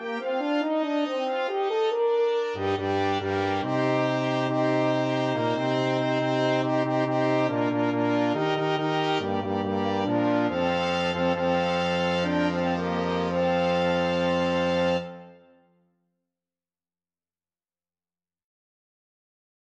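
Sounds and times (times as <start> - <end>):
quintet playing: 0.0 - 15.6.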